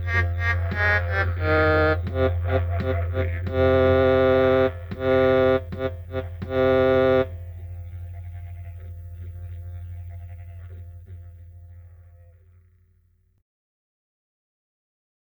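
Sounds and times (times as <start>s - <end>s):
backing track: 0.0s - 12.2s.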